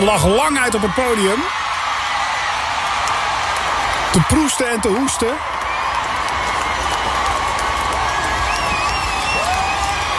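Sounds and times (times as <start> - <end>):
speech: 0.0 - 1.7, 4.1 - 5.5
concert crowd cheering and applauding: 0.0 - 10.1
whistles and shouts: 8.2 - 10.1.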